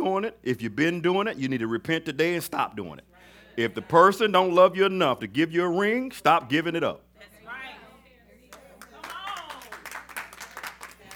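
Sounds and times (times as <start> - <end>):
speech: 0.0 - 7.3
scattered claps from audience: 8.5 - 11.1.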